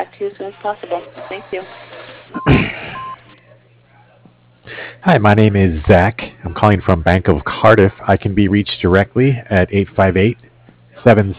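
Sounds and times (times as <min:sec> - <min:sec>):
speech: 0:00.0 - 0:03.1, 0:04.7 - 0:11.3
answering machine steady electronic tone over a telephone line: 0:02.4 - 0:03.3.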